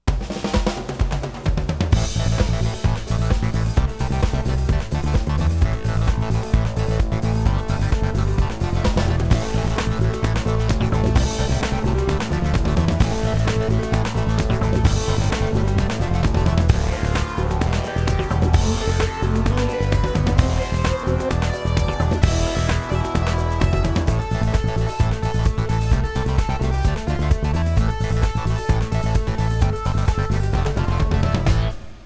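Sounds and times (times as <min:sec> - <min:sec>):
techno music: 0:00.1 - 0:32.0.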